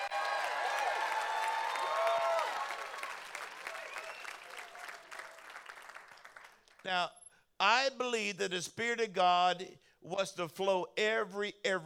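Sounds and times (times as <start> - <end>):
crowd cheering and whooping: 0.0 - 5.5
crowd applause: 0.0 - 6.8
speech: 6.8 - 11.8.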